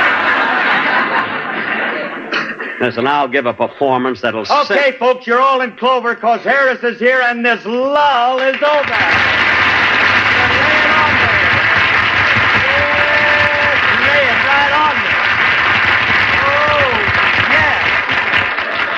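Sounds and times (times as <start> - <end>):
laughter: 0.0 - 3.0, 18.5 - 18.9
speech: 2.8 - 9.3
audience applause: 8.3 - 18.9.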